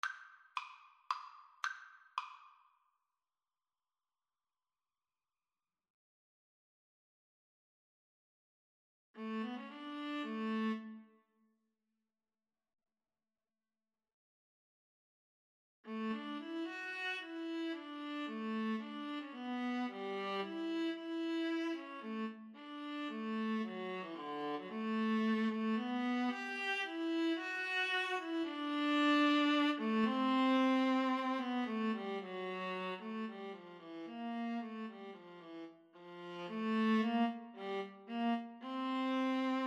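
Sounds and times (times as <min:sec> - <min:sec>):
viola duet: 0:09.2 - 0:11.1, 0:15.9 - 0:39.6.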